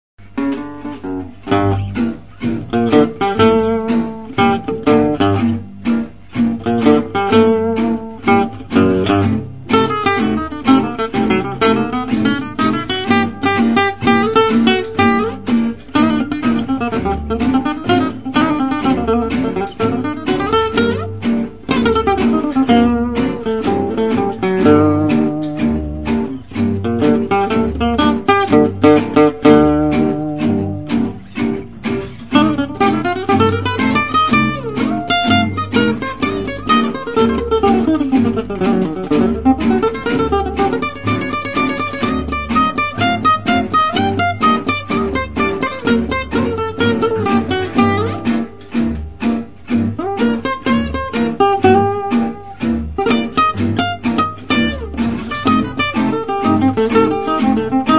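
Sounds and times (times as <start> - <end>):
minor blues backing track: 0.2 - 57.9.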